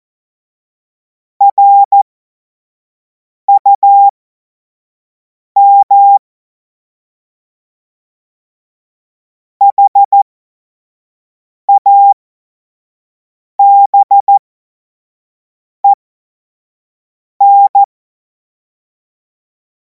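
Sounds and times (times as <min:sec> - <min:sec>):
morse code CW: 0:01.5 - 0:02.0, 0:05.6 - 0:06.2, 0:09.7 - 0:10.2, 0:11.8 - 0:12.2, 0:13.6 - 0:14.4, 0:17.4 - 0:17.9.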